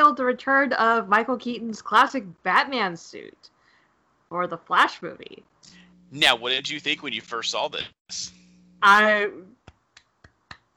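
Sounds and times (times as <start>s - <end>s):
speech: 0.2s - 3.5s, 4.3s - 9.5s
person clapping: 9.6s - 10.7s.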